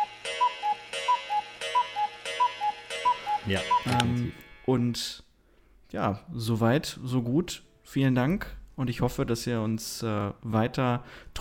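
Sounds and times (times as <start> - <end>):
cuckoo clock: 0.0 - 4.6
speech: 3.5 - 5.3, 5.9 - 11.3.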